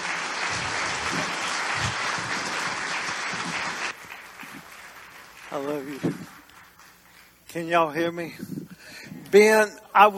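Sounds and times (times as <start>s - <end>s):
large indoor church crowd applauding a guest: 0.0s - 7.4s
speech: 5.5s - 6.3s, 7.6s - 8.6s, 9.3s - 10.1s.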